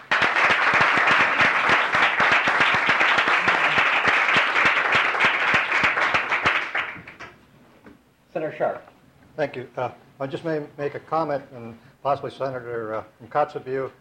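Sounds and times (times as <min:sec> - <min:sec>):
applause welcoming middle school math competition students in a state senate chamber: 0:00.0 - 0:07.3
speech: 0:08.4 - 0:13.9.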